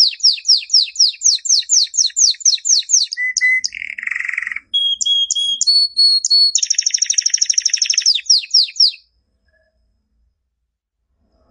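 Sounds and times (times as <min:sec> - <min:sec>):
canary singing: 0:00.0 - 0:09.0.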